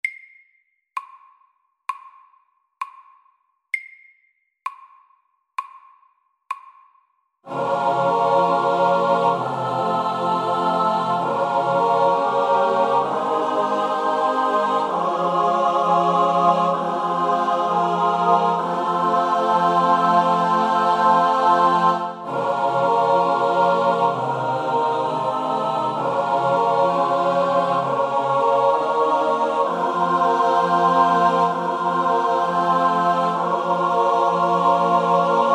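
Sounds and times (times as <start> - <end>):
slow chorale at 65 bpm: 7.5 - 35.5.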